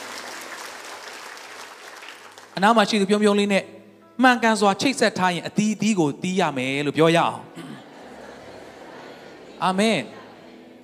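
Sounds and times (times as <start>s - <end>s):
church congregation clapping in praise during a Sunday sermon: 0.0s - 3.0s
speech: 2.6s - 7.6s, 9.6s - 10.2s
laughter: 7.8s - 10.8s.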